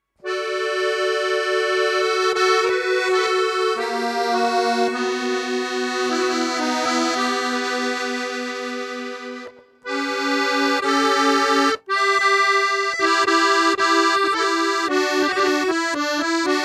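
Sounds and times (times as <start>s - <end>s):
Hungarian folk accordion music: 0.2s - 16.6s.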